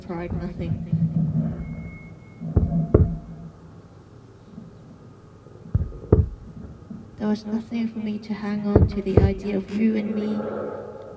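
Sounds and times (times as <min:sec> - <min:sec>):
fast fetal heartbeat on a monitor: 0:00.0 - 0:03.6, 0:05.7 - 0:07.1, 0:08.6 - 0:09.8
steady low whooshing hum: 0:00.0 - 0:11.1
speech: 0:00.1 - 0:01.3, 0:07.2 - 0:10.9.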